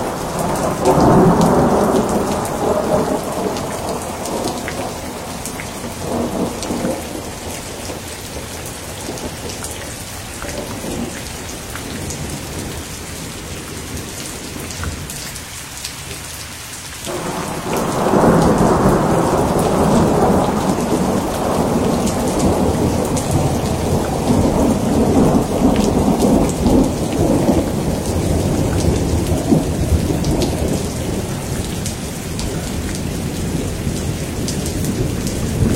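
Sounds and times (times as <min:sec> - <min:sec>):
deep rolling thunder: 0:00.0 - 0:09.6, 0:17.1 - 0:35.7
rain hissing: 0:00.0 - 0:35.7.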